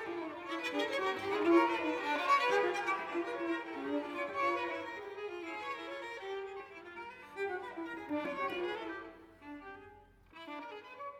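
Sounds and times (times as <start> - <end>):
string quartet playing a presto: 0.0 - 9.2.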